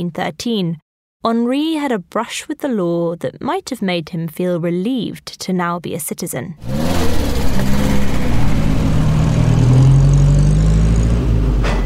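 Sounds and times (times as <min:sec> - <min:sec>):
speech: 0:00.0 - 0:07.8
motor car zooming along a country lane: 0:06.6 - 0:11.8.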